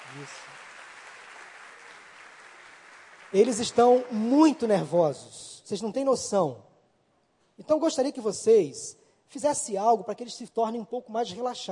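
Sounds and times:
audience applause: 0.0 - 4.8
speech: 0.1 - 0.7, 3.3 - 6.7, 7.6 - 11.7.

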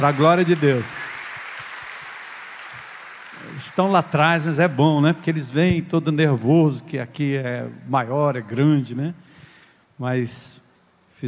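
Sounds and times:
speech: 0.0 - 1.0, 3.6 - 9.3, 10.0 - 10.6
audience applause for the band: 0.0 - 5.0.

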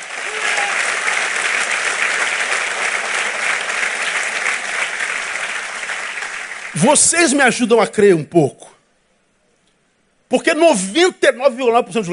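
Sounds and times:
audience applauding: 0.0 - 7.4
speech: 6.8 - 8.7, 10.3 - 12.1.

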